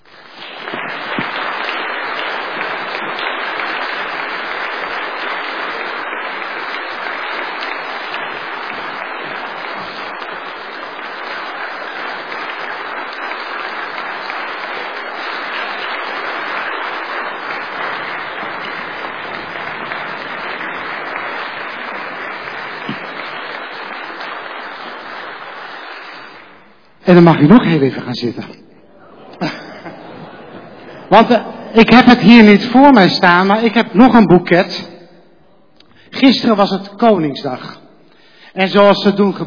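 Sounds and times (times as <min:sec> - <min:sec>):
thunderous warm applause: 0:00.2 - 0:27.6
speech: 0:27.1 - 0:28.6, 0:31.1 - 0:34.9, 0:36.2 - 0:37.8, 0:38.6 - 0:39.4
laughter: 0:28.9 - 0:31.7.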